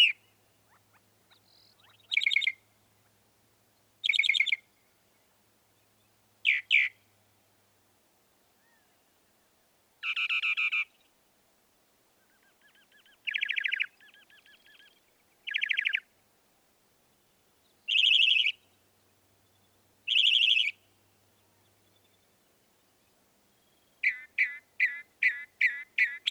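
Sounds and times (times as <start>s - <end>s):
northern mockingbird singing: 0.0s - 2.6s, 4.0s - 4.6s, 12.3s - 16.0s, 17.8s - 18.7s, 19.5s - 20.8s, 23.6s - 26.2s
faint hiss: 0.0s - 26.0s.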